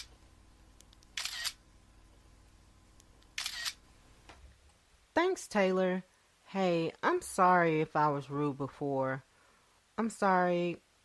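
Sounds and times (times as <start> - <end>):
camera shutter clicks taking selfie pictures: 1.2 - 1.6, 3.4 - 3.8
speech: 5.2 - 9.3, 10.0 - 10.8.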